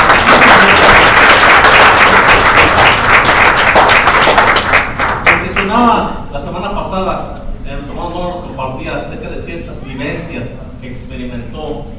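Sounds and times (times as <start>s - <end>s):
audience applauding: 0.0s - 5.7s.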